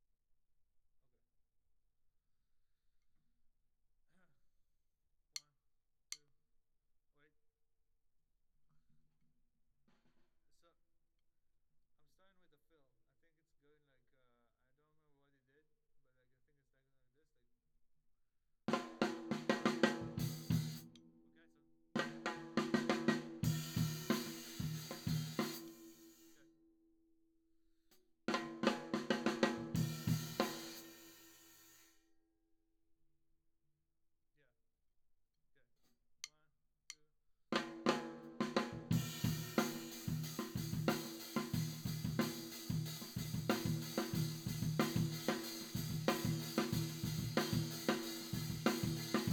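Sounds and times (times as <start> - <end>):
tom drum: 18.7 - 21.0, 22.0 - 26.0, 28.3 - 31.3, 37.6 - 49.3.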